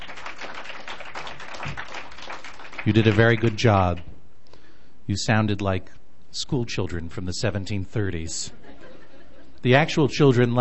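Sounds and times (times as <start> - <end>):
small group giving applause after reciting oaths: 0.0 - 3.7
speech: 2.8 - 4.1, 5.1 - 8.6, 9.6 - 10.5
laughter: 8.4 - 9.7.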